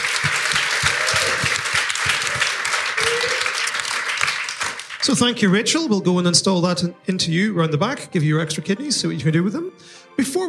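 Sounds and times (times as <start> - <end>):
round of applause: 0.0 - 5.5
speech: 5.0 - 10.4.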